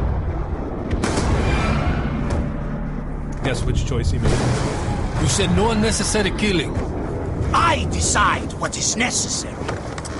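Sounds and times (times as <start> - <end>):
heavy rumbling background: 0.0 - 10.1
gunshot in a video game: 0.9 - 2.0
speech: 3.5 - 6.9, 7.5 - 9.9.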